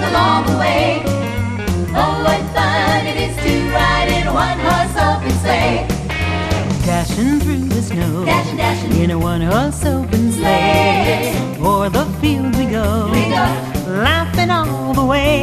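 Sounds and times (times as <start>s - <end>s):
band playing 1950s and 1960s style music: 0.0s - 15.4s.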